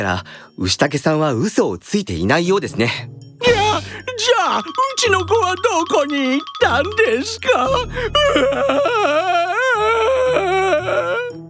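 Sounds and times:
speech: 0.0 - 9.4
person crying and wailing: 3.4 - 6.1, 6.8 - 11.4.

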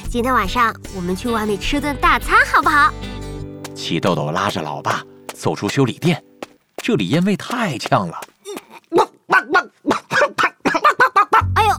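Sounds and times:
speech: 0.1 - 3.2, 3.8 - 8.3
puppy barking: 9.0 - 11.5.

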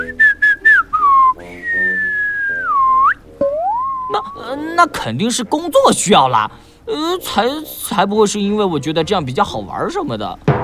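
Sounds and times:
whistling: 0.0 - 4.4
speech: 4.8 - 10.5.

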